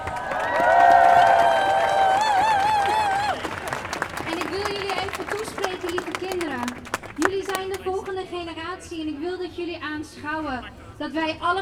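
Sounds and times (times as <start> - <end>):
crowd clapping: 0.0 - 8.3
long high wavering whoop: 0.2 - 3.5
speech: 11.0 - 11.6.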